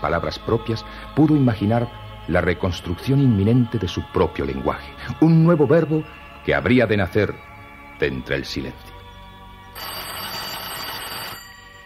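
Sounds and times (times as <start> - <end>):
speech: 0.0 - 8.9
telephone ringing: 9.8 - 11.8.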